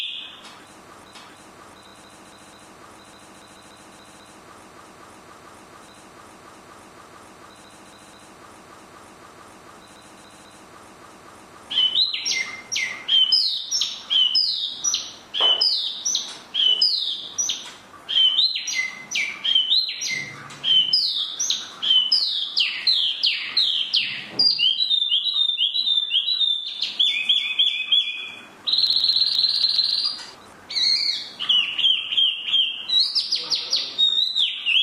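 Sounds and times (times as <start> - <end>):
Chinese hwamei whistled song: 0.0 - 0.5, 11.7 - 34.8.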